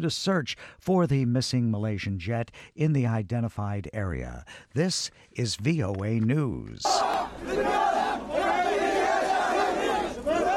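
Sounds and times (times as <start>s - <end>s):
speech: 0.0s - 7.9s
mourning crowd chanting vows of retribution: 6.9s - 10.5s.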